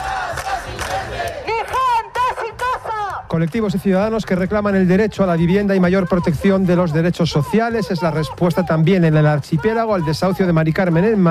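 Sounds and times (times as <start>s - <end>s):
large crowd chanting and shouting at a street protest march: 0.0s - 11.2s
speech: 3.4s - 11.2s.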